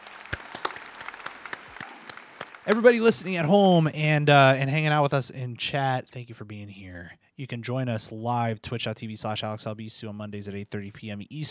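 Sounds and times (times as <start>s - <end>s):
applause: 0.0s - 3.6s
speech: 2.6s - 11.4s.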